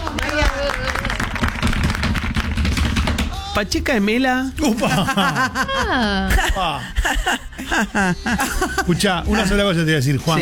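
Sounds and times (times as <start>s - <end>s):
audience applause: 0.0s - 2.7s
speech: 3.6s - 10.3s
laughter: 4.6s - 9.6s.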